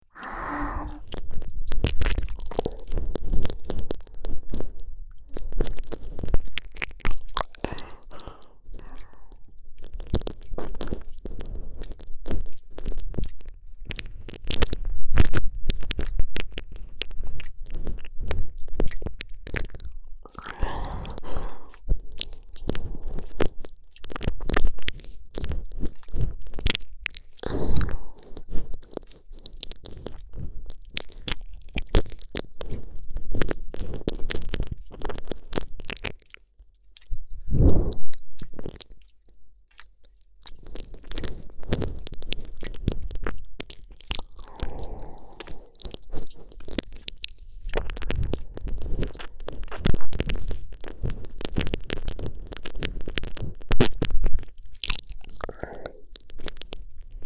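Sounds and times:
ear licking sounds: 0.0s - 57.2s.

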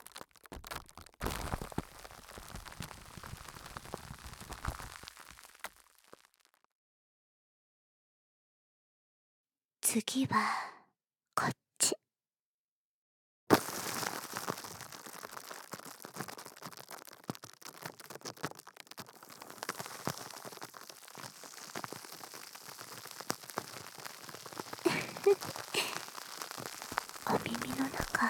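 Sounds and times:
carbonated water fizzing in the ear: 0.0s - 6.5s, 13.5s - 28.2s
speech: 9.9s - 10.7s.

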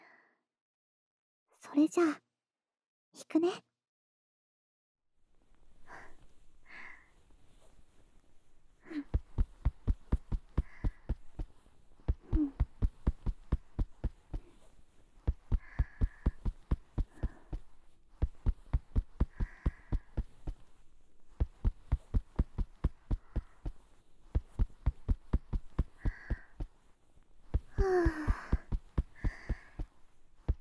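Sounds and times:
speech: 1.6s - 2.2s, 3.1s - 3.7s
faint breathing: 5.7s - 30.6s
rhythmic tapping on someone's shoulders: 8.9s - 14.6s, 15.2s - 20.7s, 21.3s - 26.8s, 27.5s - 30.6s.

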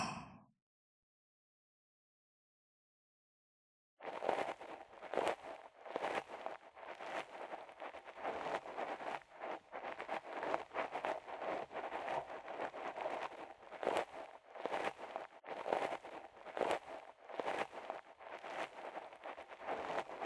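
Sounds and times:
ear cleaning in the right ear: 4.0s - 20.2s.

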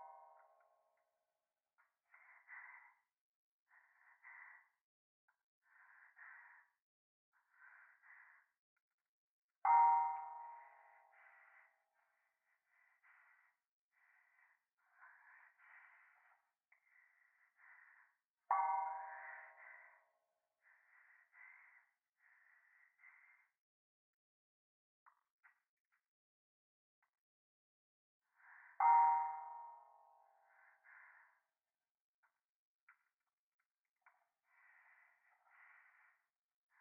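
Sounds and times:
person breathing close to the right ear in a toilet: 1.8s - 4.8s, 5.6s - 8.6s, 9.7s - 23.6s, 28.2s - 31.6s, 34.0s - 36.7s.

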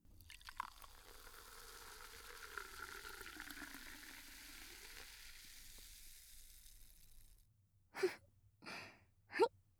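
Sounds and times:
cider poured into a glass fizzing: 0.1s - 7.4s
short breathy sounds: 8.0s - 9.5s.

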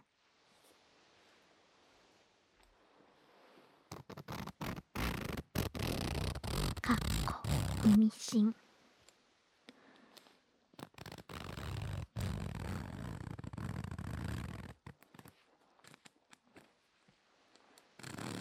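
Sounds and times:
zipper slid up and down: 3.9s - 8.1s, 10.8s - 16.7s, 18.0s - 18.4s
speech: 7.9s - 8.6s.

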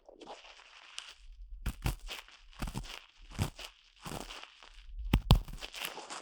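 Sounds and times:
cotton swab ear cleaning: 1.7s - 2.9s, 5.1s - 5.9s.

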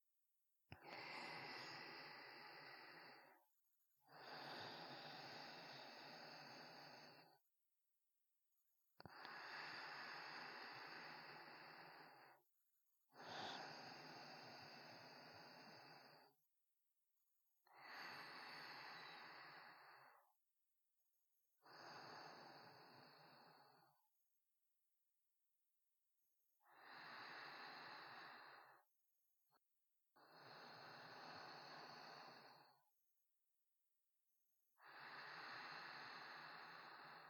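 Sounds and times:
sparse sleeping breaths: 0.8s - 7.4s, 9.0s - 12.4s, 13.1s - 16.4s, 17.7s - 20.4s, 21.6s - 24.0s, 26.6s - 28.9s, 30.2s - 32.8s, 34.8s - 37.2s.

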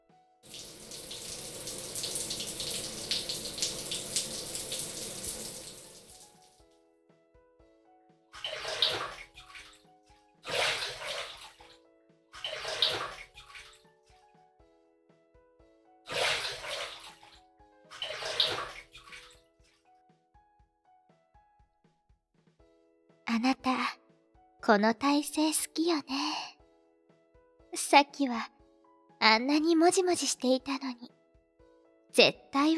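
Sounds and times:
shower water running into bathtub: 0.4s - 6.6s, 8.4s - 9.8s, 10.5s - 11.7s, 12.4s - 13.8s, 16.1s - 19.4s
water splashing and pouring: 0.5s - 6.5s, 8.4s - 9.8s, 10.5s - 11.7s, 12.4s - 13.8s, 16.1s - 19.4s
speech: 24.7s - 26.4s, 27.9s - 28.6s, 29.2s - 31.1s, 32.2s - 32.7s.

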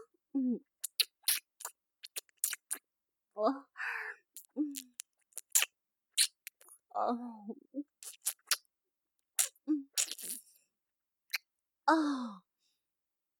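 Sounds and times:
fellatio sounds: 0.3s - 8.7s, 9.4s - 10.6s, 11.3s - 12.3s.

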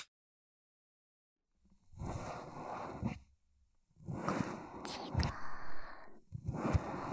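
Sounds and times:
writing brush and paintbrush tickling the ears: 2.0s - 3.2s, 4.1s - 7.1s.

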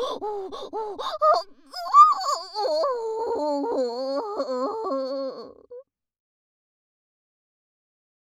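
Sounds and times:
person moaning: 0.0s - 5.8s.

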